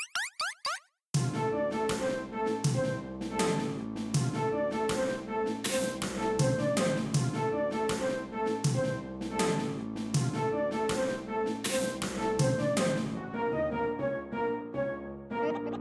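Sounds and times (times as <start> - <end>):
boss background music: 1.2 - 15.7.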